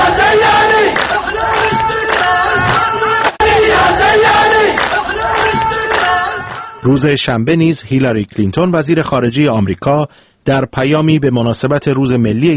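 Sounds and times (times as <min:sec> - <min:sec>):
large protest crowd chanting in unison: 0:00.0 - 0:06.9
speech: 0:06.8 - 0:12.5.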